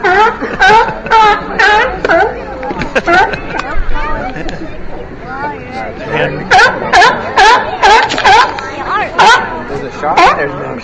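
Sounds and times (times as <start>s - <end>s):
California sea lions barking and groaning: 0.0s - 3.6s, 6.1s - 10.8s
laughter: 0.0s - 5.1s.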